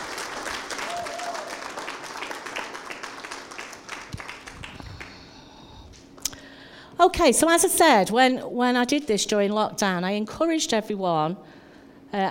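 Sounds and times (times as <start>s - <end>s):
audience clapping: 0.0s - 5.3s
speech: 7.0s - 12.2s.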